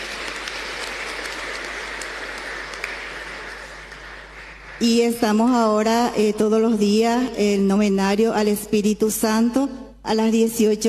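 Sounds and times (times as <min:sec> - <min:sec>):
applause: 0:00.0 - 0:05.7
speech: 0:04.8 - 0:10.8.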